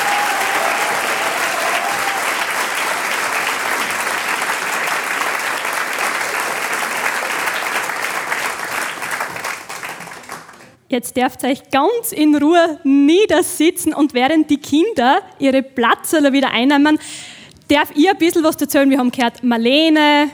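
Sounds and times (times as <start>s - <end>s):
audience applause for children's choir: 0.0s - 10.8s
speech: 10.9s - 20.3s.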